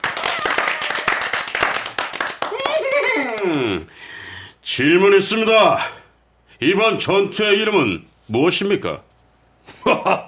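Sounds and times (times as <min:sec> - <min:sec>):
crowd group applause: 0:00.0 - 0:03.9
speech: 0:04.7 - 0:06.0, 0:06.6 - 0:09.1, 0:09.8 - 0:10.2.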